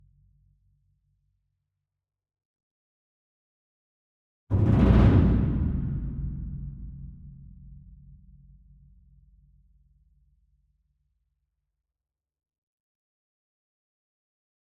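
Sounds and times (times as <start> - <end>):
distant taiko drum roll: 4.5 - 7.2.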